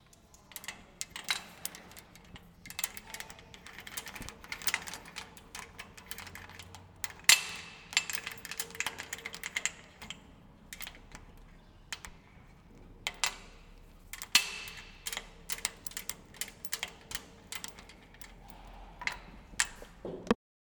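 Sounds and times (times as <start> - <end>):
climbing gear clips clanging: 0.0 - 20.2.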